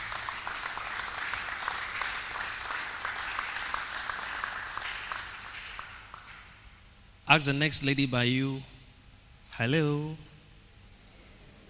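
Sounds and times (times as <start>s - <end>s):
audience clapping hands: 0.0s - 6.6s
speech: 7.3s - 8.7s, 9.6s - 10.3s.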